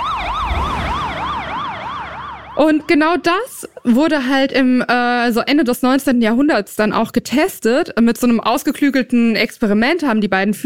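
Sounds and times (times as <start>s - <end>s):
siren passing by with Doppler shift: 0.0s - 3.9s
speech: 2.6s - 10.6s.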